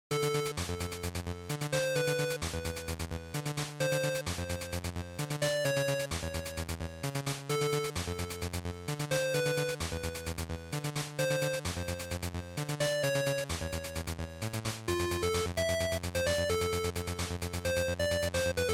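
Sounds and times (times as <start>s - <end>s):
Game Boy shooter stage music: 0.1s - 18.7s.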